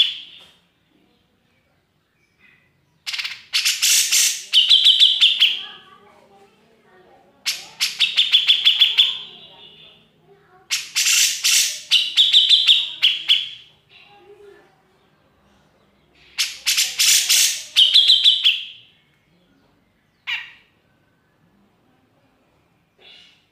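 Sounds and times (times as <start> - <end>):
grey-cheeked bulbul singing: 2.1 - 6.0, 7.4 - 14.0, 15.8 - 21.5.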